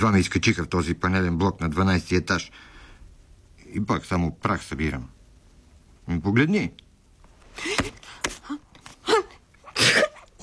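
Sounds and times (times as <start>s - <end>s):
speech: 0.0s - 2.7s, 3.7s - 5.2s, 6.1s - 6.8s
person sneezing: 9.0s - 10.4s.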